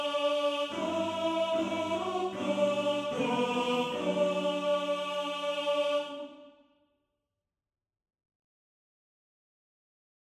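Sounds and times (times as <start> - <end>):
first tenor section of a male choir singing: 0.0 - 6.5.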